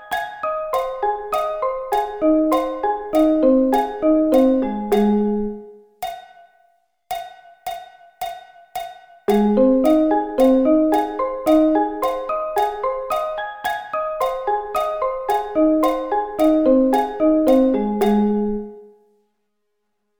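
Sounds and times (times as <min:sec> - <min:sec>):
A-flat arpeggio inversions: 0:00.0 - 0:05.7, 0:09.3 - 0:18.8.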